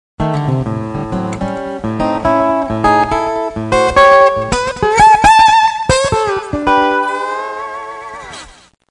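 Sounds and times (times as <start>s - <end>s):
acoustic blues music: 0.2s - 8.5s.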